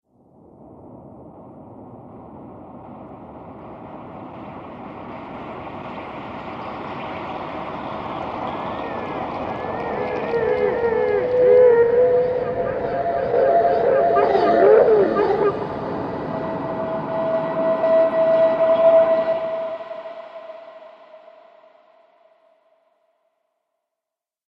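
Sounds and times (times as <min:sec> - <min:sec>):
scary horror soundscape: 0:00.4 - 0:22.4
horror screams: 0:05.8 - 0:22.1.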